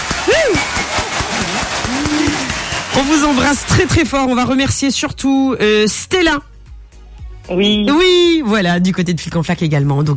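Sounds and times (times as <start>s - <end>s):
scattered hand claps: 0.0s - 4.5s
speech: 3.0s - 6.5s, 7.5s - 10.1s.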